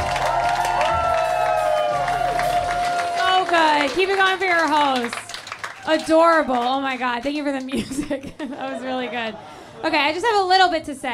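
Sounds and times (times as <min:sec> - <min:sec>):
audience clapping: 0:00.0 - 0:07.8
speech: 0:03.8 - 0:05.2, 0:05.8 - 0:11.1
laughter: 0:07.6 - 0:10.2.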